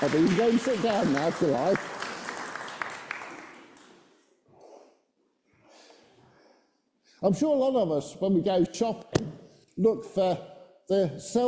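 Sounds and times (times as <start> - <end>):
speech: 0.0 - 2.0, 7.2 - 11.4
audience clapping: 0.0 - 4.2.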